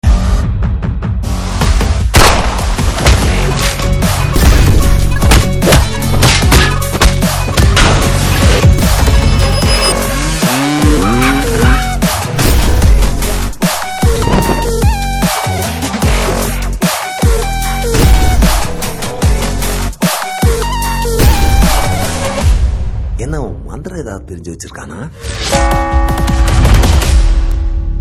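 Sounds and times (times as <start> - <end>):
trailer background music ringtone: 0.0 - 28.0.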